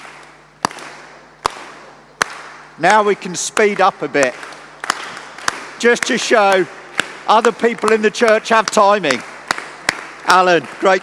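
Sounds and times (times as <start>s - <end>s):
crowd slow clapping in unison: 0.0s - 11.0s
speech: 2.8s - 4.6s, 5.8s - 9.3s, 10.3s - 11.0s.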